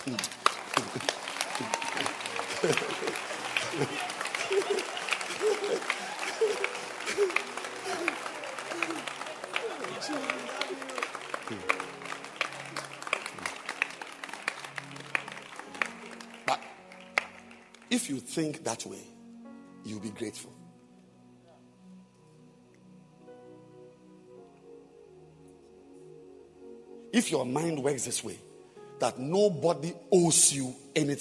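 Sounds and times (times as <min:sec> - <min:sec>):
speech: 0:00.0 - 0:03.1, 0:03.7 - 0:04.1, 0:18.4 - 0:19.2, 0:19.9 - 0:20.6, 0:27.2 - 0:31.1
audience clapping hands: 0:00.0 - 0:18.4
laughter: 0:00.1 - 0:13.6.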